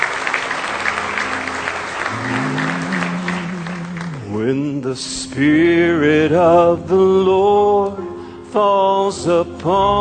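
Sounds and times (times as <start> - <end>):
church congregation clapping at an evening service: 0.0 - 5.0
sustained musical tone: 0.4 - 8.8
speech: 4.4 - 8.0, 8.6 - 9.9.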